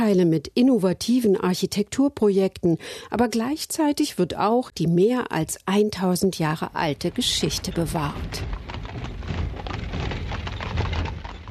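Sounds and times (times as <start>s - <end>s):
speech: 0.0s - 9.1s
horse carriage on cobblestones: 6.4s - 11.4s.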